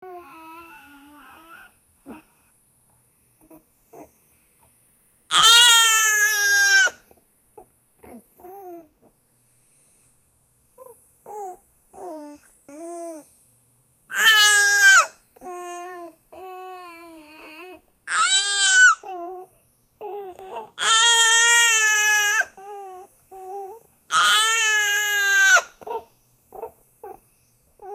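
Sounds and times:
puppy crying: 0:05.3 - 0:07.0, 0:14.1 - 0:15.1, 0:16.9 - 0:27.2.

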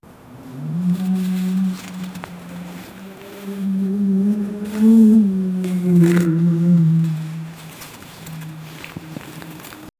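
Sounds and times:
large terrifying monster beast: 0:00.4 - 0:07.0.

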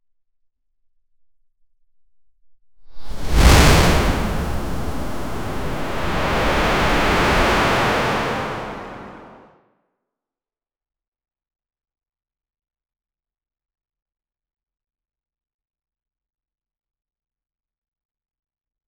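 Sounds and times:
mana sound effect: 0:03.2 - 0:09.5.

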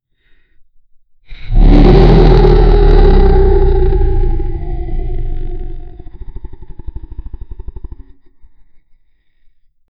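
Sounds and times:
giant roaring: 0:01.3 - 0:08.2.

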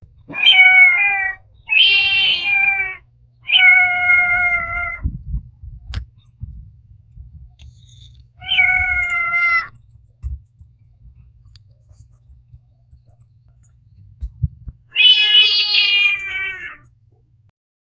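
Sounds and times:
domestic animal sounds: 0:00.3 - 0:05.1, 0:07.8 - 0:09.8, 0:14.9 - 0:16.9.

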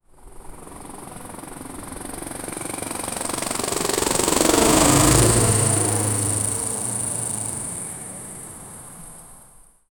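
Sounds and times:
quadcopter drone accelerating: 0:03.1 - 0:09.1.

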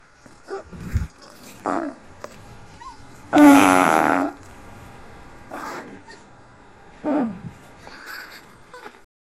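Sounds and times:
fart: 0:03.3 - 0:04.4.

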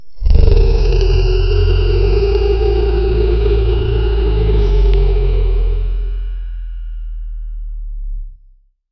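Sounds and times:
kaiju monster roaring: 0:00.0 - 0:06.7.

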